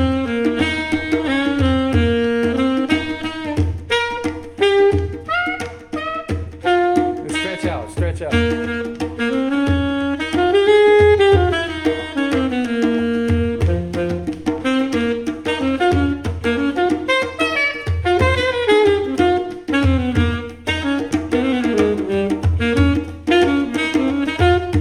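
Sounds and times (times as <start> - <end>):
saxophone solo: 0.0 - 24.7.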